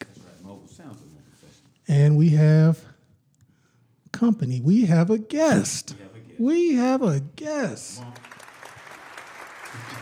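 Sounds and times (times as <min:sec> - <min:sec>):
speech: 0:00.8 - 0:01.2, 0:01.9 - 0:02.9, 0:04.2 - 0:08.3
studio audience clapping: 0:08.0 - 0:10.0.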